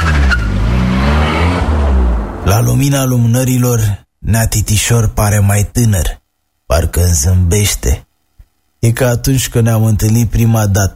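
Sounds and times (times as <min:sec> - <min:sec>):
car tire squeal: 0:00.0 - 0:01.7
car pulling away with engine rumble: 0:00.0 - 0:03.1
speech: 0:02.5 - 0:08.1, 0:08.8 - 0:10.9.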